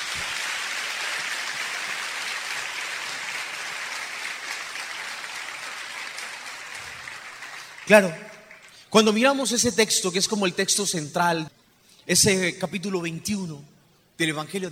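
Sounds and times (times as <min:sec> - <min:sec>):
crowd applauding: 0:00.0 - 0:08.9
speech: 0:07.9 - 0:08.2, 0:08.9 - 0:14.7.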